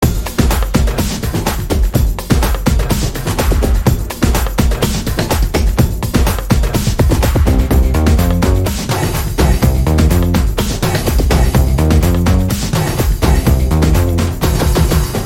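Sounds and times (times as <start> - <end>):
drum beats: 0.0 - 15.2.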